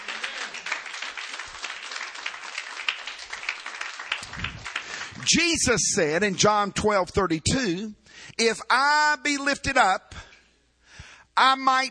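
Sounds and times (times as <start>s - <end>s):
audience clapping hands: 0.0s - 5.8s
speech: 5.3s - 10.1s, 11.4s - 11.8s.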